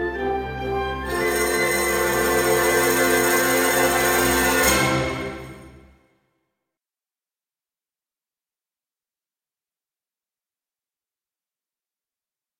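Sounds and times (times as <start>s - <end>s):
village dance song: 0.1s - 6.0s.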